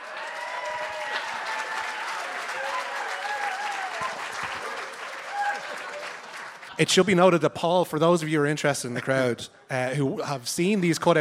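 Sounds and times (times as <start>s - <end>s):
faint voices and cheers: 0.0s - 6.2s
audience applause: 0.0s - 7.1s
speech: 6.8s - 11.1s.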